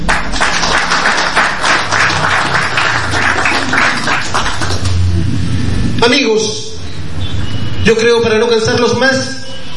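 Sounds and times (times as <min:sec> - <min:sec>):
audience applause: 0:00.0 - 0:05.2
speech: 0:06.0 - 0:06.6, 0:07.9 - 0:09.4.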